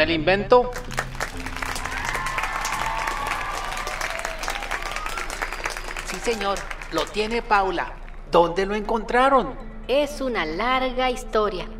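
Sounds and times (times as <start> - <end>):
speech: 0.0 - 1.5, 6.2 - 11.7
crowd applause: 0.8 - 7.7.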